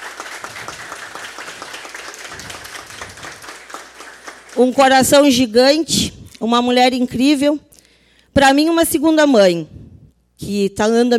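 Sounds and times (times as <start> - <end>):
crowd clapping: 0.0 - 5.0
speech: 4.6 - 7.6, 8.4 - 9.8, 10.4 - 11.1.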